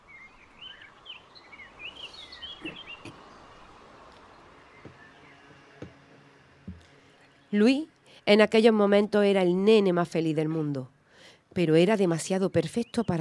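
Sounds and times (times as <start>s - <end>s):
birds in the trees chirping and trilling: 0.0s - 7.8s, 12.4s - 13.1s
speech: 7.5s - 11.0s, 11.6s - 13.1s.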